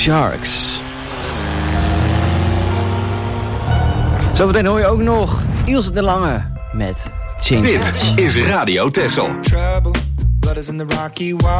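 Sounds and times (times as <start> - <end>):
speech: 0.0 - 0.6, 4.4 - 11.5
motorcycle approaching: 0.0 - 4.3.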